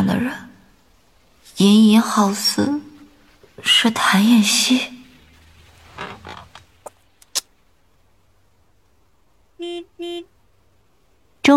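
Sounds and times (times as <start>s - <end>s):
speech: 0.1s - 0.5s, 1.6s - 2.8s, 3.6s - 5.0s
car horn honking: 9.6s - 10.3s.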